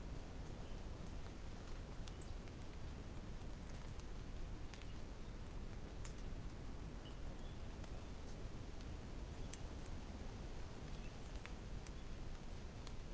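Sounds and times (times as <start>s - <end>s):
forest ambience exterior in Samaipata Bolivia: 0.0s - 13.1s.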